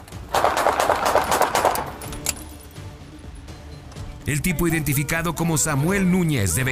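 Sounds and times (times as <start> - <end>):
police gunfire: 0.3 - 2.0
speech: 4.3 - 6.7.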